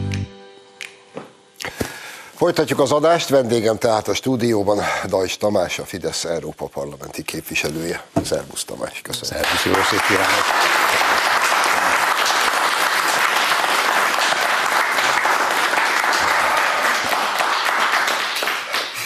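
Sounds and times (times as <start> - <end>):
speech: 2.4 - 10.8
audience applause: 9.3 - 19.0.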